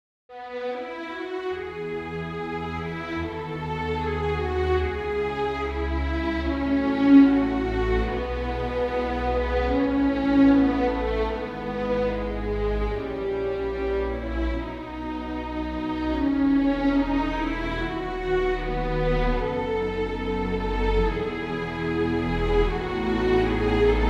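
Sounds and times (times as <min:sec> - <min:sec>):
string ensemble playing a suite postlude: 0:00.3 - 0:24.0.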